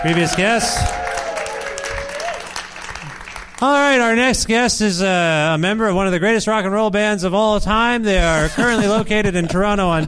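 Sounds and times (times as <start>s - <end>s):
speech: 0.0s - 1.0s, 3.6s - 10.0s
faint whistles and cheers: 0.0s - 2.8s
crowd applauding: 0.0s - 4.0s.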